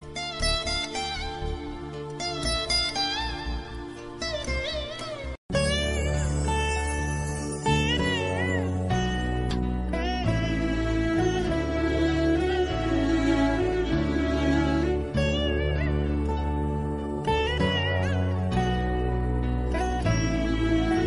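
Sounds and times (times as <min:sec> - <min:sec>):
background music: 0:00.0 - 0:21.0.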